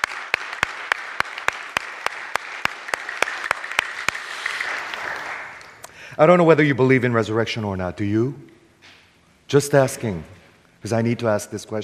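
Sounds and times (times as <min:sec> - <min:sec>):
audience clapping: 0:00.0 - 0:05.9
speech: 0:06.2 - 0:08.6, 0:09.5 - 0:11.8.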